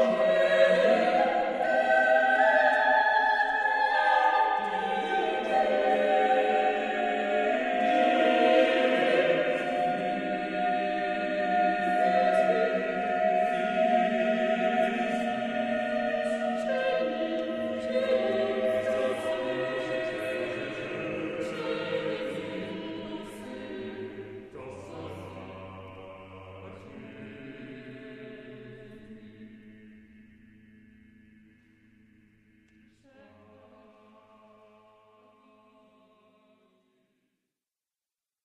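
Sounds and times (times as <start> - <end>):
a cappella choir of sixteen soprano alto tenor and bass voices: 0.0 - 30.3, 32.9 - 36.8.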